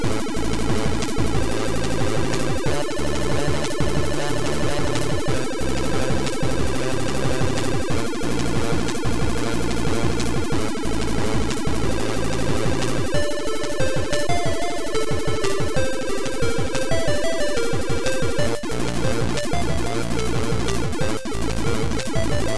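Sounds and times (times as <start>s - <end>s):
drum and bass: 0.0s - 22.5s.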